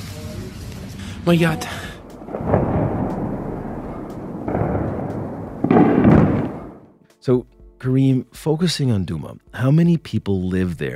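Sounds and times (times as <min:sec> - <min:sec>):
speech: 0:01.2 - 0:01.8, 0:07.2 - 0:10.9
phosphorus bombs exploding over Douma in Eastern Ghouta: 0:02.0 - 0:06.9.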